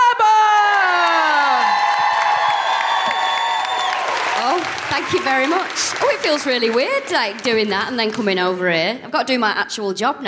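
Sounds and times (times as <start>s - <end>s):
person shouting: 0.0s - 1.7s
audience whooping: 0.0s - 6.2s
audience clapping to welcome a comedian: 0.6s - 8.9s
speech: 5.0s - 10.2s.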